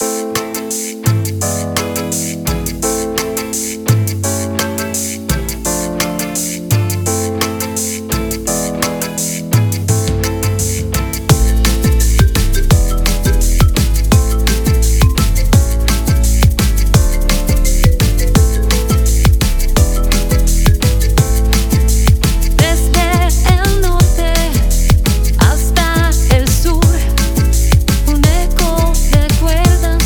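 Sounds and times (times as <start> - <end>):
cumbia fado music: 0.0 - 30.0.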